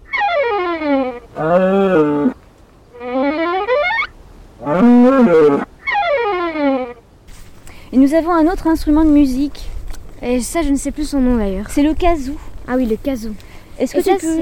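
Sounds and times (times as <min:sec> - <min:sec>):
cows bellowing: 0:00.0 - 0:02.4, 0:03.0 - 0:07.0
speech: 0:08.2 - 0:14.4.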